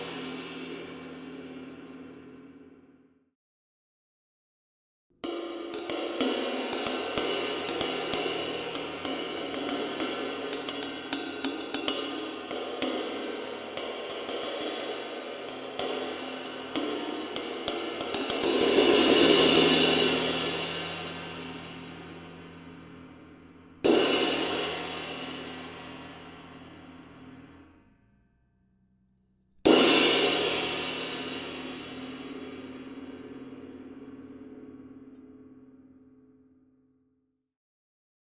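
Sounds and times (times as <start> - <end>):
24 jazz ride cymbal: 5.2 - 27.6, 29.7 - 34.6.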